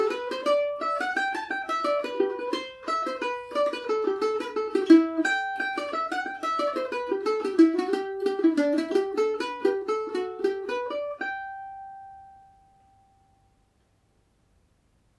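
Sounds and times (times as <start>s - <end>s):
Paris Swing Macaferri mandolin playing Irish tune in G major at session speed: 0.0s - 13.6s.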